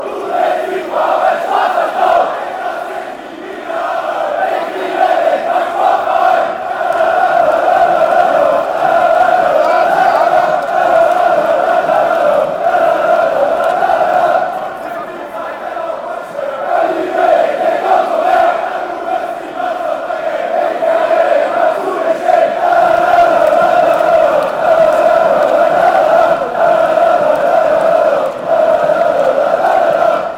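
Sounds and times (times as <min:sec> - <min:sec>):
sport club fans chanting: 0:00.0 - 0:30.3.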